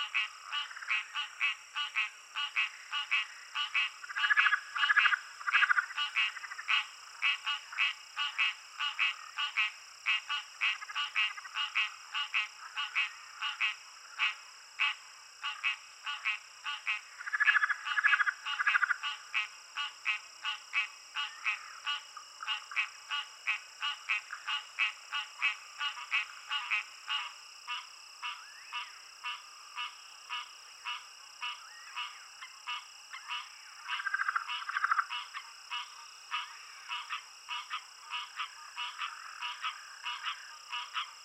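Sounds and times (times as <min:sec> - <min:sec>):
Southern leopard frog calling: 0:00.0 - 0:41.2
insects: 0:00.0 - 0:41.2
Pauraque calling: 0:31.4 - 0:41.2.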